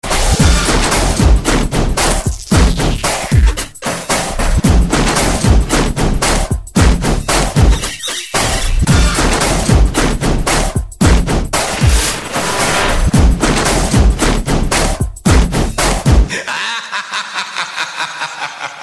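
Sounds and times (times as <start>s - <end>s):
army drum beat: 0.3s - 3.6s, 4.3s - 7.8s, 8.8s - 12.2s, 13.0s - 16.3s
laughter: 16.3s - 18.8s.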